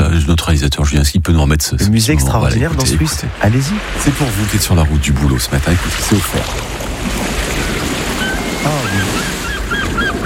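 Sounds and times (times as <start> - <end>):
speech: 0.3 - 7.5, 8.6 - 9.4
sea waves surf: 2.2 - 10.2.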